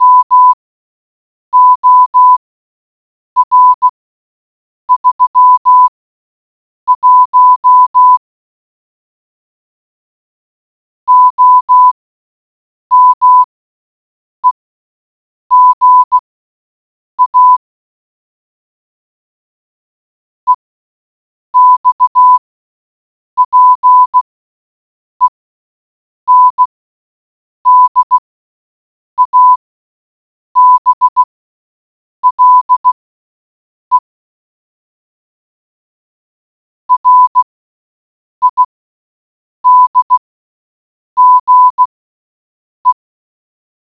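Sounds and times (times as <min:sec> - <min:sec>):
morse code beeps: 0:00.0 - 0:00.6, 0:01.6 - 0:02.4, 0:03.4 - 0:03.9, 0:04.9 - 0:05.9, 0:06.9 - 0:08.2, 0:11.1 - 0:12.0, 0:12.9 - 0:13.5, 0:15.5 - 0:16.2, 0:17.2 - 0:17.6, 0:21.6 - 0:22.4, 0:23.4 - 0:24.3, 0:26.3 - 0:26.8, 0:27.7 - 0:28.2, 0:29.2 - 0:29.6, 0:30.6 - 0:31.3, 0:32.2 - 0:33.0, 0:33.9 - 0:34.1, 0:36.9 - 0:37.6, 0:38.4 - 0:38.8, 0:39.6 - 0:40.3, 0:41.2 - 0:42.0.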